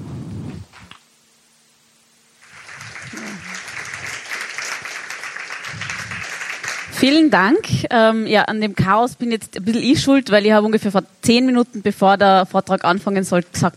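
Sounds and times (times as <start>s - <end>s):
audience applause: 2.4s - 7.3s
speech: 7.0s - 13.7s.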